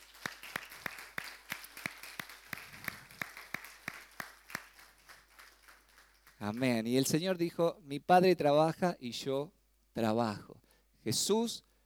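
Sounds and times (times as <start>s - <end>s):
church congregation clapping for its workers and ministry volunteers: 0.0s - 7.2s
speech: 6.4s - 11.7s.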